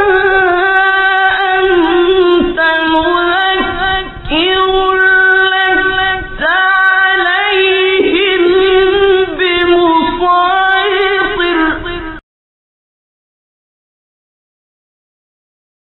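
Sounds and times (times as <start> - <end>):
recitation of a surah: 0.0 - 12.2.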